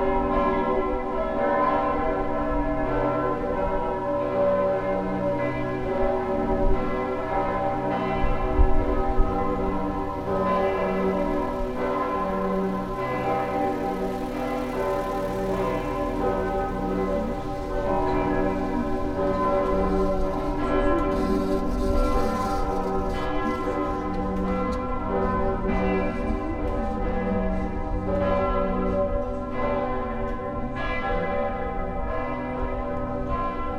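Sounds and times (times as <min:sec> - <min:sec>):
large bells pealing: 0:00.0 - 0:33.7.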